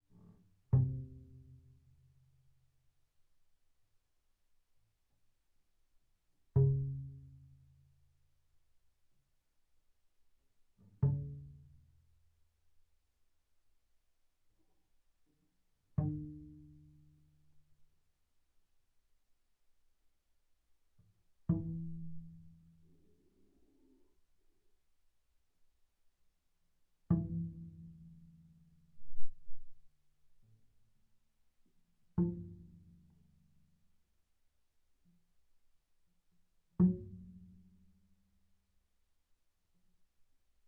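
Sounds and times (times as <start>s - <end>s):
double bass pizzicato on A string, mezzo-forte: 0.1s - 2.5s, 6.6s - 7.9s, 10.8s - 12.3s, 16.0s - 17.6s, 21.4s - 24.3s, 27.1s - 29.9s, 32.2s - 33.6s, 36.8s - 37.9s.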